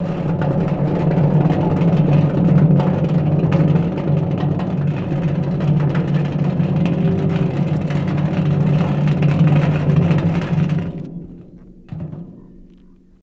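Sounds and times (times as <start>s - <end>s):
boulders scraping: 0.0s - 13.2s
earthquake rumble: 0.0s - 13.2s.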